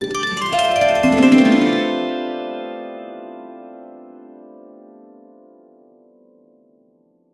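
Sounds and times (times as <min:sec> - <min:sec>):
romantic-style harp: 0:00.0 - 0:05.3.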